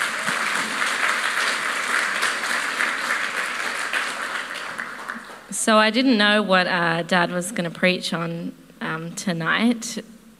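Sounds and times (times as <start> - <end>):
audience applause: 0.0 - 5.5
speech: 5.6 - 10.1.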